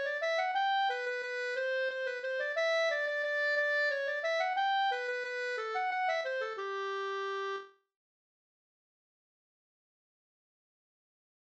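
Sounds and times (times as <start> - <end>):
folk dance polska music: 0.0 - 7.6.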